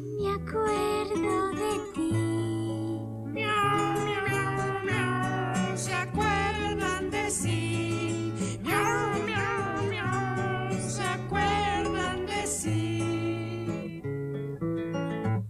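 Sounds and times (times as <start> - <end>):
bouncy song with steady bass and melody: 0.0 - 14.6
voice singing cat-like meow sounds: 3.4 - 7.5, 8.6 - 14.0.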